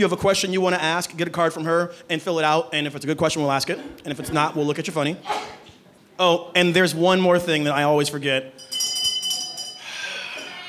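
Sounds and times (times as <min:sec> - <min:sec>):
speech: 0:00.0 - 0:08.8
small bell ringing: 0:08.6 - 0:10.6.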